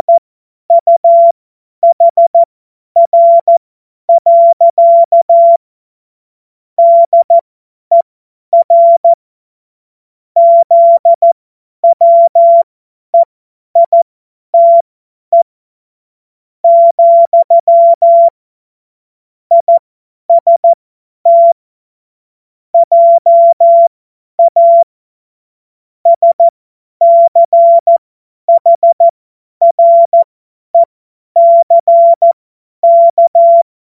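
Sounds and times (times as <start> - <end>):
CW Morse code beeps: 0.0 - 5.6, 6.8 - 8.0, 8.6 - 9.2, 10.4 - 15.5, 16.7 - 18.4, 19.5 - 21.6, 22.8 - 24.9, 26.1 - 33.7.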